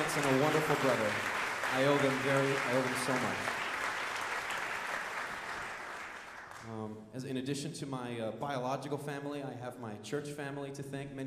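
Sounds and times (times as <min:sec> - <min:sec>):
audience applause: 0:00.0 - 0:06.7
speech: 0:00.2 - 0:03.6, 0:06.6 - 0:11.2.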